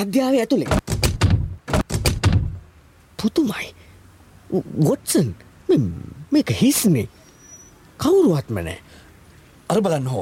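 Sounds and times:
speech: 0.0 - 0.9, 3.2 - 3.8, 4.5 - 7.2, 8.0 - 9.0, 9.7 - 10.2
door being forced open with heavy thuds: 0.7 - 2.6.

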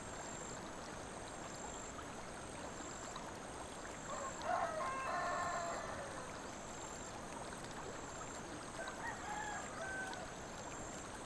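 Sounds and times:
babbling brook in the Kirkland countryside: 0.0 - 11.2.

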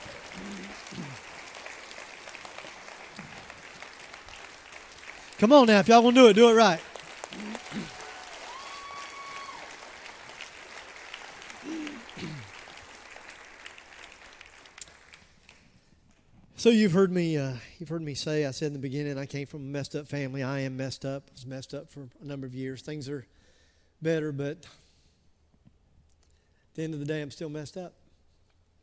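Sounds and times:
audience applause: 0.0 - 15.6
speech: 5.4 - 6.9, 16.6 - 23.4, 24.0 - 24.8, 26.8 - 28.0.

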